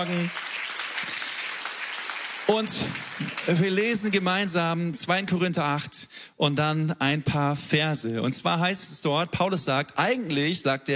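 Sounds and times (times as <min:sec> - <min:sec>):
speech: 0:00.0 - 0:00.4, 0:02.5 - 0:10.9
crowd applauding: 0:00.0 - 0:04.2.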